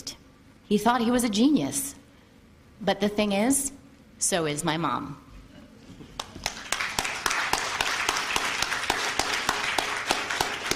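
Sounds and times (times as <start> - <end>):
speech: 0.1 - 2.0, 2.8 - 5.2
audience clapping: 6.2 - 10.7.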